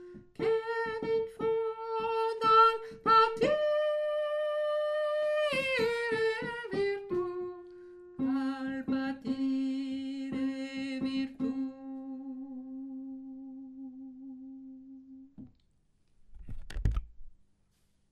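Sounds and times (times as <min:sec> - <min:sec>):
alto voice singing: 0:00.0 - 0:15.3.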